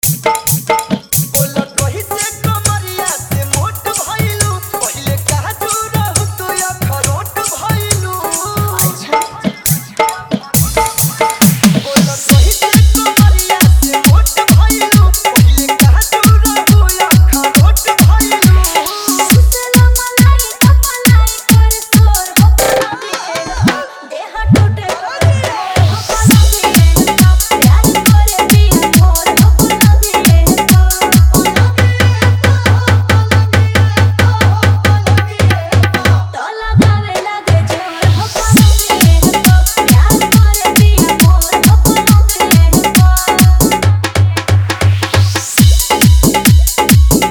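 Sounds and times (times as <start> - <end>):
Bhojpuri dholak bass mix: 0.0 - 47.2.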